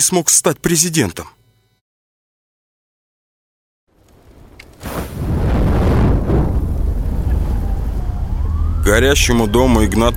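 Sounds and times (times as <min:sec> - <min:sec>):
speech: 0:00.0 - 0:01.4, 0:08.9 - 0:10.1
strong explosions in a building: 0:04.8 - 0:09.3.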